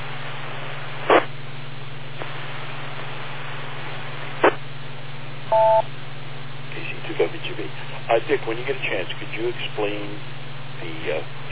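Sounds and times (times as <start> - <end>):
radio repeater beep: 5.5 - 5.9
speech: 7.2 - 11.4.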